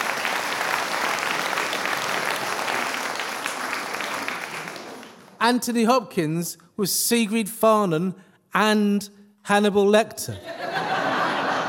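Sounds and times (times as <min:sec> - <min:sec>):
audience applause: 0:00.0 - 0:05.4
speech: 0:05.4 - 0:10.7
laughter: 0:10.4 - 0:11.6.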